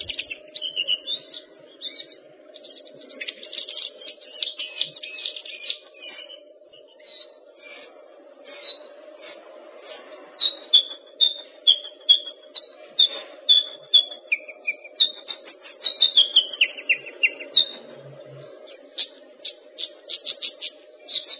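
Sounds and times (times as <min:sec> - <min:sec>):
bird song of chirps, whistles and trills: 0:00.0 - 0:21.3.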